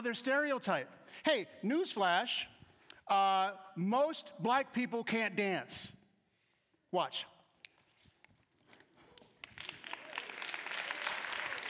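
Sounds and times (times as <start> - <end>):
speech: 0.0 - 2.5, 3.1 - 6.0, 6.9 - 7.3
audience clapping: 8.9 - 11.6.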